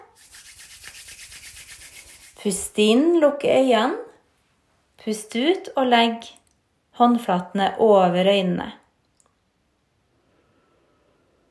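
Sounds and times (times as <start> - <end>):
hands rubbing together quickly: 0.0 - 2.6
speech: 2.4 - 4.1, 5.0 - 6.4, 7.0 - 8.8.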